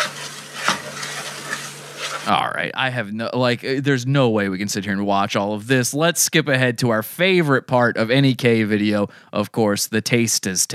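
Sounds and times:
butter melting and simmering in a pan: 0:00.0 - 0:02.3
speech: 0:02.2 - 0:10.7.

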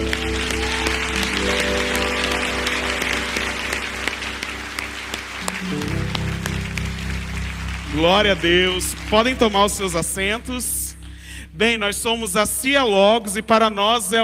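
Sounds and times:
audience applause: 0:00.0 - 0:10.6
sustained keyboard chords: 0:00.0 - 0:13.5
speech: 0:08.0 - 0:10.8, 0:11.6 - 0:14.2.

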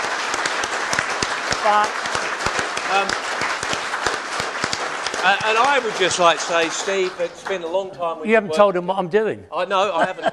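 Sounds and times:
round of applause: 0:00.0 - 0:07.8
speech: 0:01.6 - 0:02.0, 0:02.9 - 0:03.2, 0:05.2 - 0:10.3
laughter: 0:09.7 - 0:10.3.

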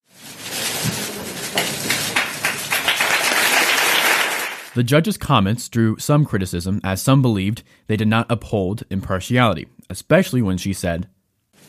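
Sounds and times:
courtroom crowd applauding: 0:01.1 - 0:04.8
speech: 0:04.8 - 0:11.2.

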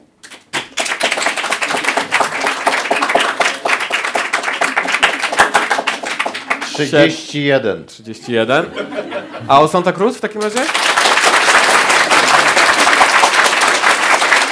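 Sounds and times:
audience applause as a vote: 0:00.3 - 0:07.4, 0:10.4 - 0:14.5
laughter: 0:01.6 - 0:03.1, 0:05.1 - 0:10.8, 0:11.6 - 0:14.4
speech: 0:06.8 - 0:11.0.

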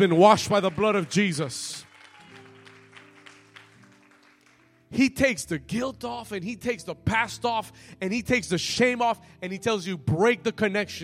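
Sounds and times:
speech: 0:00.0 - 0:01.9, 0:04.9 - 0:11.0
hand clapping: 0:00.0 - 0:04.8.

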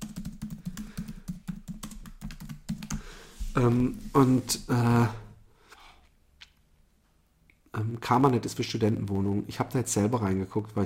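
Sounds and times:
quick typing on a computer keyboard: 0:00.0 - 0:03.0
speech: 0:03.6 - 0:05.2, 0:07.9 - 0:10.8.

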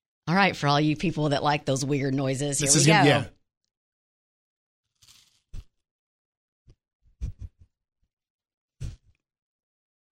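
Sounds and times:
speech: 0:00.3 - 0:03.4
chewing crunchy food: 0:05.0 - 0:05.7.

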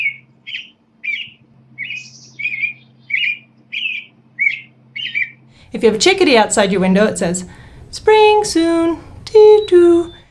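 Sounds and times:
American robin singing caroling phrases: 0:00.0 - 0:05.4
faint low steady hum: 0:00.0 - 0:10.2
speech: 0:05.7 - 0:10.2.

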